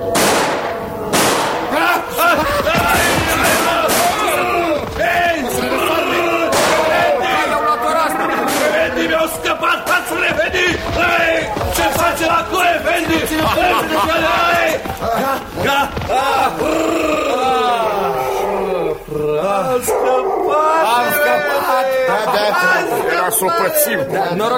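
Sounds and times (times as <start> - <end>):
volley of pistol gunshots: 0.0 - 1.8, 6.5 - 7.0
laughter: 0.8 - 24.4.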